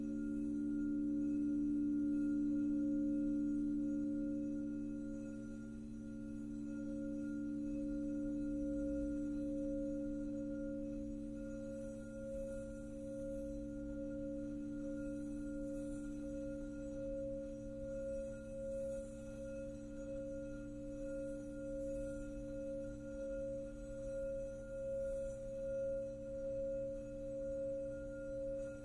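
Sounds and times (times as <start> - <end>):
crystal singing bowl: 0.0 - 28.8.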